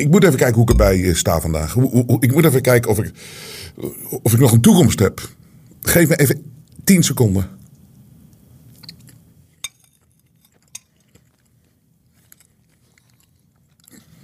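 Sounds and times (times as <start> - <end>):
speech: 0.0 - 7.6
chewing and biting while tasting cake: 8.7 - 9.3, 10.0 - 14.2.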